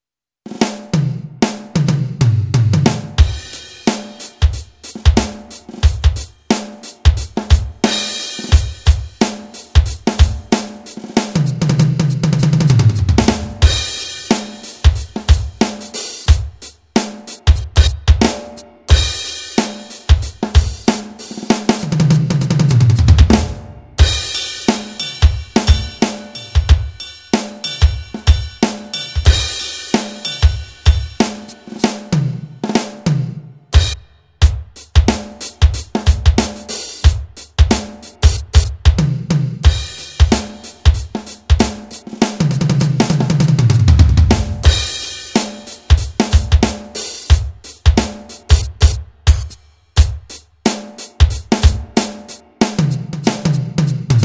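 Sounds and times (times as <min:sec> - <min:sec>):
funk music: 0:00.5 - 0:54.2.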